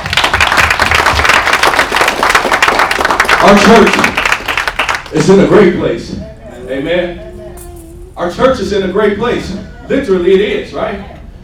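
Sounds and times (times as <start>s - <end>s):
crowd clapping: 0.0s - 5.5s
speech: 3.5s - 4.2s, 5.1s - 7.3s, 8.2s - 11.2s.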